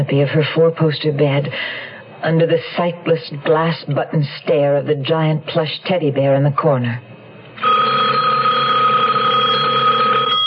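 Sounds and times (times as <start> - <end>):
speech: 0.0 - 7.7
telephone ringing: 7.6 - 10.4.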